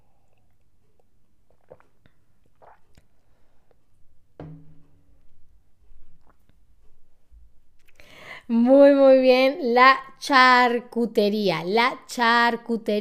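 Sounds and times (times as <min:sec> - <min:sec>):
person drinking water: 0:00.0 - 0:04.0, 0:05.9 - 0:07.1
speech: 0:08.5 - 0:12.9.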